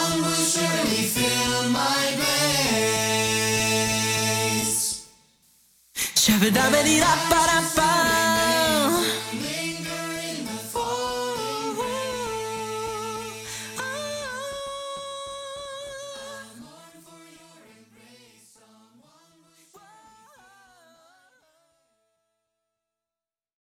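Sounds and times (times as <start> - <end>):
person singing: 0.0 - 5.0, 6.0 - 16.9.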